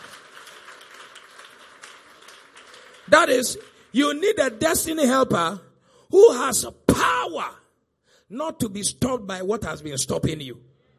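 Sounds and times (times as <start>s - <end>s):
audience clapping: 0.0s - 4.6s
speech: 3.1s - 7.6s, 8.3s - 10.7s.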